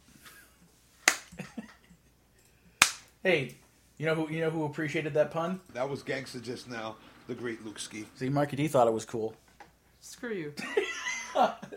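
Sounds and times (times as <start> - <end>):
slow clap: 1.0 - 1.4, 2.8 - 3.1
speech: 3.2 - 9.4, 10.0 - 11.7.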